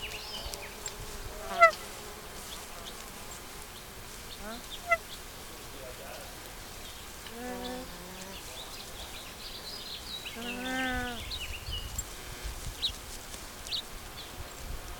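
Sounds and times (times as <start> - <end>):
nene songs: 0.0 - 13.0, 13.6 - 14.6.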